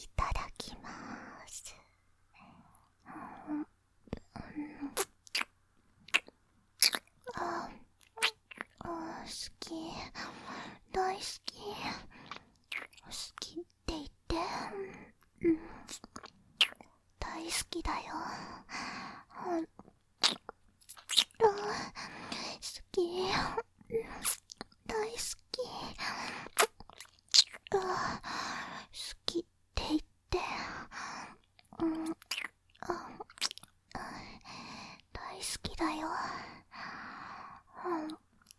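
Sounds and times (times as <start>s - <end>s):
woman whispering softly: 0.0s - 5.1s, 7.2s - 19.8s, 21.1s - 26.5s, 27.6s - 36.7s, 37.7s - 38.5s
ASMR ear-licking wet smacks, slurps and clicks: 4.8s - 7.4s, 8.0s - 8.8s, 12.1s - 13.2s, 15.8s - 16.9s, 19.8s - 21.4s, 26.5s - 27.8s, 31.6s - 33.8s.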